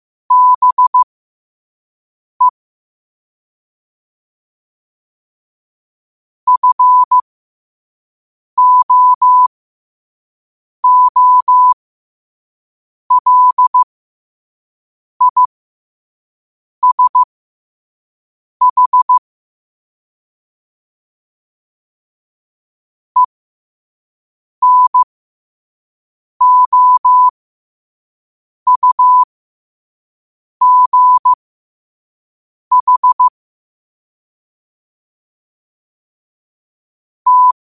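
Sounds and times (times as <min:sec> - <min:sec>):
morse code at 5 wpm: 0:00.3 - 0:01.0, 0:06.5 - 0:07.2, 0:08.6 - 0:09.5, 0:10.8 - 0:11.8, 0:13.1 - 0:13.9, 0:15.2 - 0:15.5, 0:16.8 - 0:17.3, 0:18.6 - 0:19.2, 0:24.6 - 0:25.1, 0:26.4 - 0:27.3, 0:28.7 - 0:29.3, 0:30.6 - 0:31.4, 0:32.7 - 0:33.3, 0:37.3 - 0:37.5.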